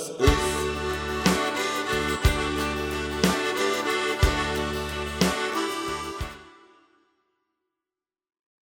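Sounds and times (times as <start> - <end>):
bass: 0.2 - 6.5.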